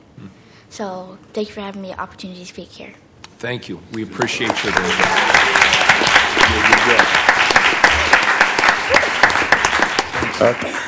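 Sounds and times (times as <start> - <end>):
speech: 0.7 - 7.3, 10.4 - 10.8
audience applause: 4.2 - 10.8.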